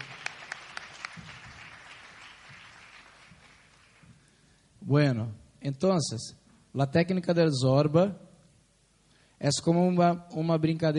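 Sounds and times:
audience clapping: 0:00.0 - 0:04.3
speech: 0:04.9 - 0:08.2, 0:09.4 - 0:10.9.

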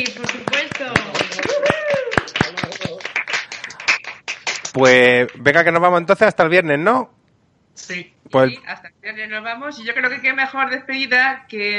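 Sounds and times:
people clapping in applause: 0:00.0 - 0:05.6
speech: 0:04.8 - 0:07.2, 0:07.8 - 0:11.7.

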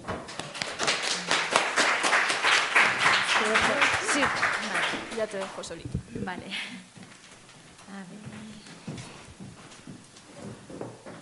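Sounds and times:
crowd applause: 0:00.3 - 0:05.7
speech: 0:05.2 - 0:06.9, 0:07.9 - 0:08.7.

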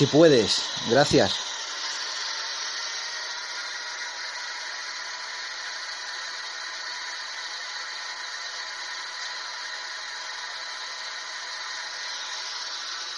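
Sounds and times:
speech: 0:00.0 - 0:01.5
white noise: 0:00.0 - 0:13.1.

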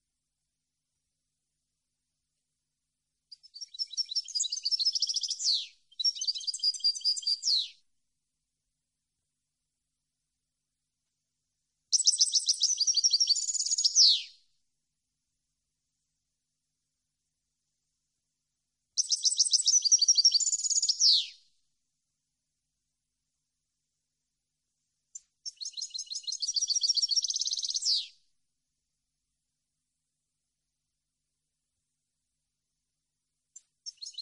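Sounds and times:
European goldfinch twittering song: 0:03.3 - 0:07.7, 0:11.9 - 0:14.3, 0:19.0 - 0:21.4, 0:25.4 - 0:28.1, 0:33.8 - 0:34.2.

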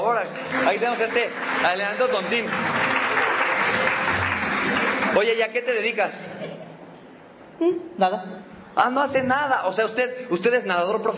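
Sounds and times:
audience applause: 0:00.0 - 0:06.0
speech: 0:00.2 - 0:02.8, 0:05.2 - 0:06.6, 0:07.6 - 0:11.1.

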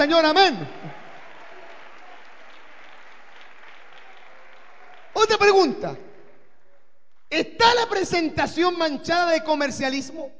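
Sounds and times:
speech: 0:00.0 - 0:01.0, 0:05.2 - 0:06.1, 0:07.3 - 0:10.3
audience applause: 0:00.0 - 0:07.3.

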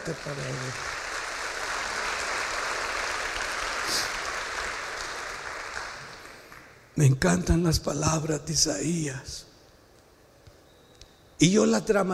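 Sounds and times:
crowd clapping: 0:00.0 - 0:06.8
speech: 0:00.1 - 0:01.0, 0:03.9 - 0:04.2, 0:07.0 - 0:09.5, 0:11.4 - 0:12.1.

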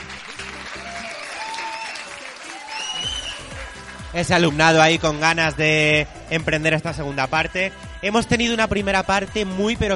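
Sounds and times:
students applauding: 0:00.0 - 0:05.9
speech: 0:04.1 - 0:09.9.

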